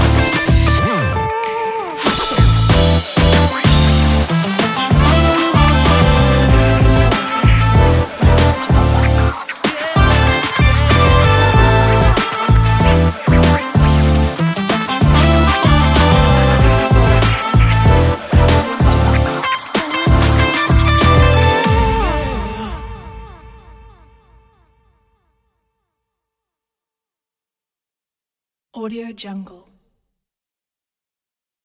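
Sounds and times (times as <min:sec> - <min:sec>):
hip hop music: 0:00.0 - 0:24.1.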